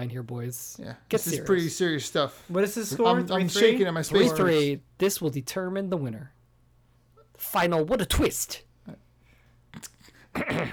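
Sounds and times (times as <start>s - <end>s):
speech: 0.0s - 6.4s, 7.4s - 9.0s, 9.8s - 10.7s
throat clearing: 9.7s - 10.7s.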